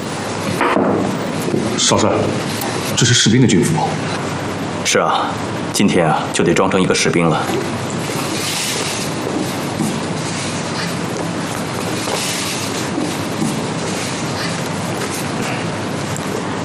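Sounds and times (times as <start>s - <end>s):
train rolling along the rails: 0.0s - 16.2s
speech: 1.8s - 7.9s.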